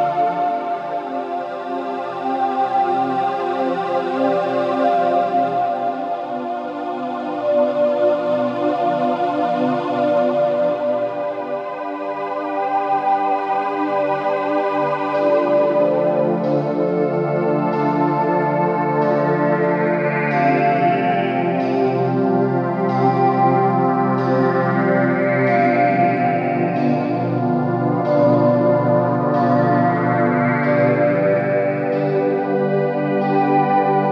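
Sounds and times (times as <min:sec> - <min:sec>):
VHS-style dreamwave music: 0:00.0 - 0:34.1.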